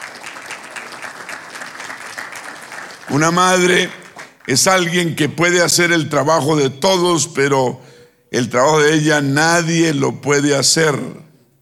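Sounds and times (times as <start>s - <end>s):
applause: 0.0s - 5.0s
speech: 3.1s - 11.3s.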